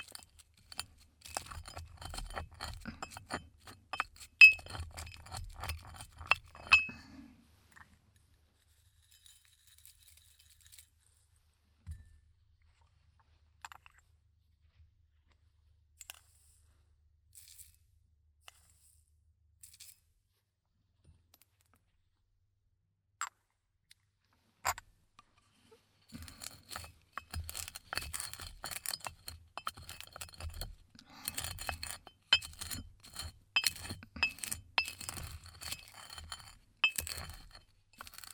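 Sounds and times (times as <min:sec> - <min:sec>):
yagen medicine grinder: 0:00.0 - 0:07.0, 0:26.1 - 0:38.3.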